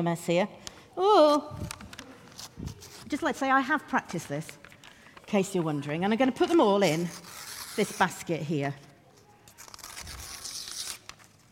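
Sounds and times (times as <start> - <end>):
speech: 0.0 - 1.8, 2.5 - 4.6, 5.3 - 8.9
paper torn up by hand during a church service: 1.6 - 3.2, 6.8 - 8.2, 9.1 - 11.5.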